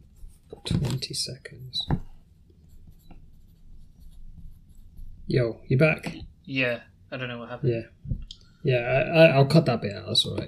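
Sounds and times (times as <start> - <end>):
speech: 0.7 - 2.1, 5.3 - 10.4
pen scratching on paper jotting a time: 2.7 - 5.3.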